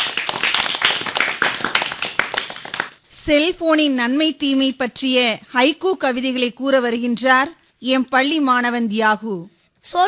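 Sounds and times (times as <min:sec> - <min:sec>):
school audience clapping for students after their speech: 0:00.0 - 0:03.0
speech: 0:03.3 - 0:10.0.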